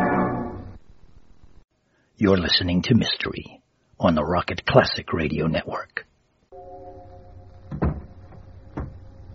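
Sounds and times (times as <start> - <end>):
hiss and hum: 0.0 - 9.3
speech: 2.2 - 6.1
door closing: 7.4 - 9.3.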